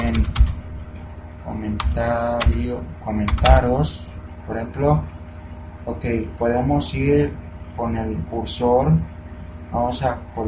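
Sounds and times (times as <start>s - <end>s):
typing on a computer keyboard with backspace presses: 0.0s - 0.6s, 1.8s - 2.6s, 3.3s - 3.6s
steady low hum: 0.0s - 10.4s
speech: 2.0s - 5.2s, 5.8s - 9.1s, 9.7s - 10.4s.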